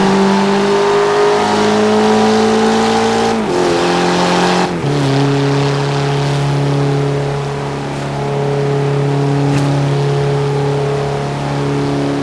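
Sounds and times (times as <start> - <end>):
vehicles cruising: 0.0 - 12.2.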